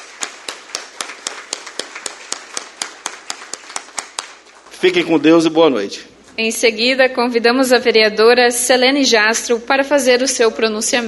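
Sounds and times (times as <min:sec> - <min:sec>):
rhythmic clapping: 0:00.0 - 0:05.0
speech: 0:04.8 - 0:11.0.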